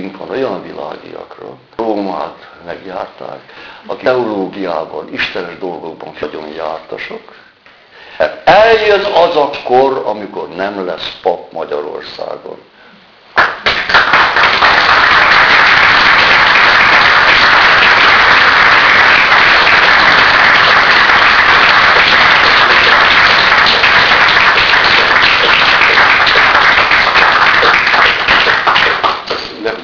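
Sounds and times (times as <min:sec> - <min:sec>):
speech: 0:00.3 - 0:07.4, 0:08.2 - 0:12.7
audience applause: 0:13.4 - 0:29.6.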